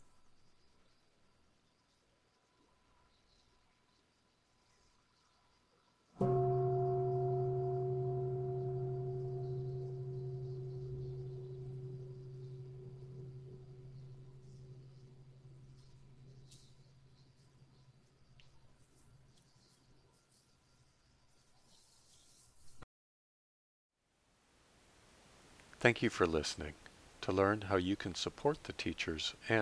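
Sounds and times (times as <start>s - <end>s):
meditation bell ringing: 6.2s - 16.6s
speech: 25.8s - 29.6s.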